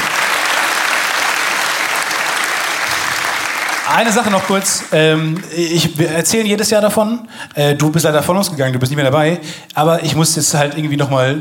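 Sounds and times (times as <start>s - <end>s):
audience applause: 0.0s - 5.7s
speech: 3.9s - 11.3s.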